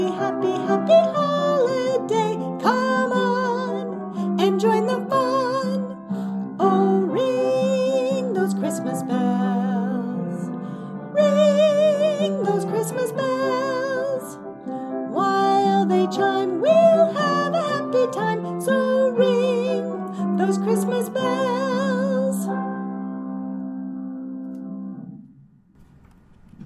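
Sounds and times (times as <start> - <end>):
Christmas song with vocals: 0.0 - 23.6.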